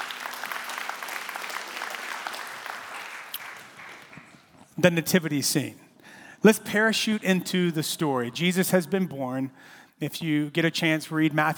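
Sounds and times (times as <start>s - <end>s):
audience clapping: 0.0s - 4.8s
speech: 4.8s - 5.8s, 6.4s - 11.5s.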